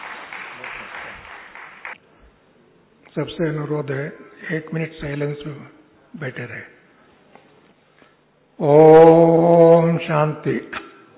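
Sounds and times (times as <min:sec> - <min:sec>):
audience applause welcoming a speaker at a spiritual gathering: 0:00.0 - 0:02.0
speech: 0:03.2 - 0:06.8, 0:08.6 - 0:09.4, 0:10.0 - 0:10.8.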